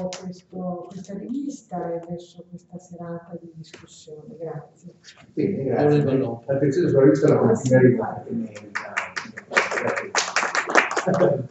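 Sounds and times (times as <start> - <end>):
speech: 0.0 - 10.2, 11.0 - 11.4
audience applause: 8.6 - 11.4.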